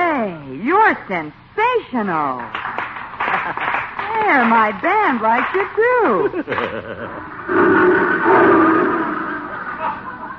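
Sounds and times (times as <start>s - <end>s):
speech: 0.9s - 2.6s, 4.2s - 9.0s
laughter: 3.2s - 4.7s, 5.9s - 7.5s, 9.5s - 10.3s
lion roaring: 7.2s - 10.3s.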